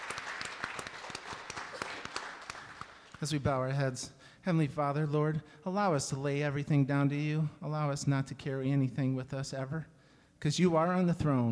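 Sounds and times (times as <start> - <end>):
church congregation clapping hands in praise: 0.0 - 3.5
speech: 3.2 - 11.5.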